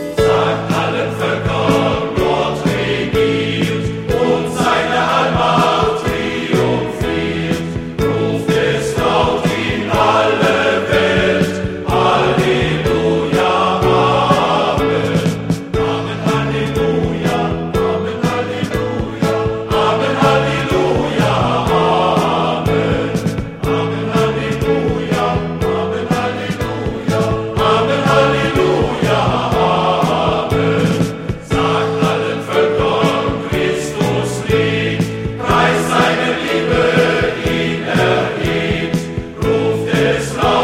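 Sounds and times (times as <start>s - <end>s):
male choir singing: 0.2s - 40.6s.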